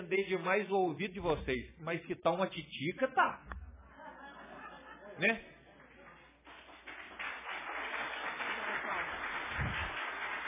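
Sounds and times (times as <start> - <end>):
speech: 0.1 - 3.5, 5.2 - 5.5
laughter: 3.8 - 5.4
crowd applause: 5.8 - 10.4.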